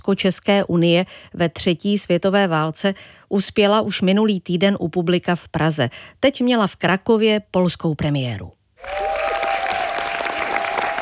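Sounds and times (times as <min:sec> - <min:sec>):
speech: 0:00.0 - 0:09.1
theatre audience in Kraków applauding at end of Polish premiere: 0:08.8 - 0:10.9.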